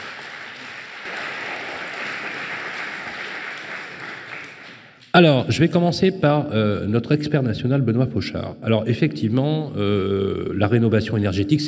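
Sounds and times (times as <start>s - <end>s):
audience applause: 0.0s - 5.0s
speech: 5.2s - 11.6s.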